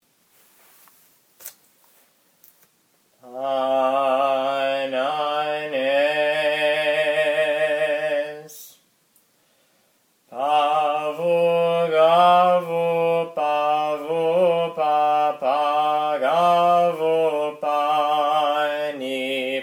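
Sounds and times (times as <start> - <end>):
slow Byzantine chant: 3.2 - 9.0, 10.2 - 19.6.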